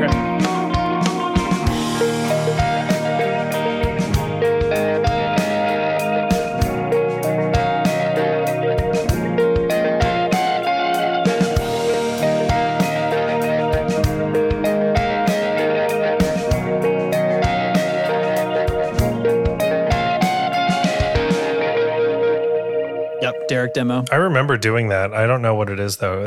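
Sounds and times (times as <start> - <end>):
electric guitar played through a delay pedal: 0.0 - 24.6
speech: 23.7 - 26.2.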